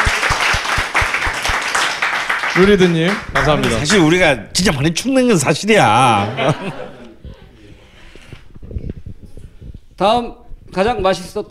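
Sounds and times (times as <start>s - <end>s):
crowd applause: 0.0s - 4.4s
speech: 2.6s - 6.9s, 10.0s - 11.4s
laughter: 6.0s - 8.0s.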